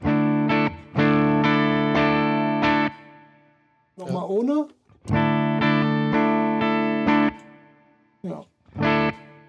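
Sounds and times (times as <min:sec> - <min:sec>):
electric guitar with light overdrive boost pedal strumming chords: 0:00.0 - 0:03.3, 0:05.0 - 0:07.8, 0:08.7 - 0:09.4
speech: 0:04.0 - 0:05.2.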